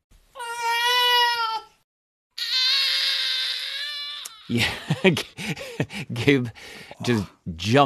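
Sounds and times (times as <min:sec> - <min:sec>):
babies crying: 0:00.4 - 0:01.8, 0:02.4 - 0:05.0
laughter: 0:04.5 - 0:06.6
speech: 0:04.5 - 0:07.8.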